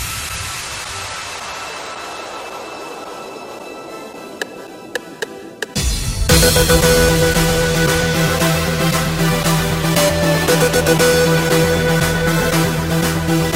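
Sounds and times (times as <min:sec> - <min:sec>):
twerk to house music transition: 0:04.3 - 0:13.5.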